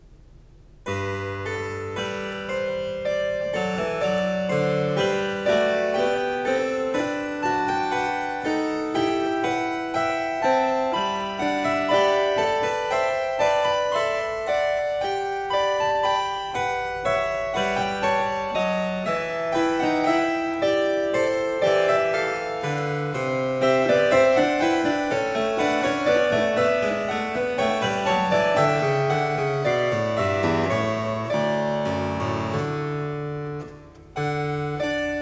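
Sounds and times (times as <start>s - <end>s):
harpsichord: 0.9s - 35.2s.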